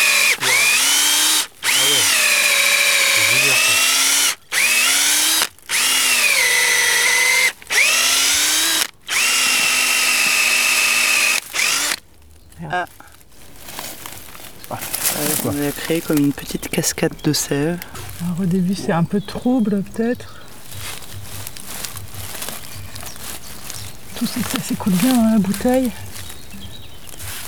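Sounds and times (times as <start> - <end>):
power drill boring into a tree trunk: 0.0 - 12.0, 24.2 - 26.3
faint crackling and rustling: 11.4 - 27.4
speech: 15.9 - 20.4, 24.4 - 26.1.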